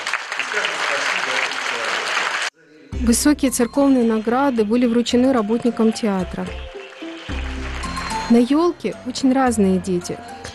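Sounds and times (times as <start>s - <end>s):
audience applause: 0.0s - 2.5s, 6.2s - 8.5s
speech: 3.0s - 6.7s, 8.3s - 10.5s.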